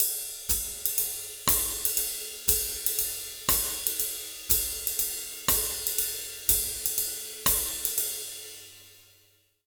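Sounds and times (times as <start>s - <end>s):
Latin jazz drum loop at 120 BPM: 0.0s - 9.0s.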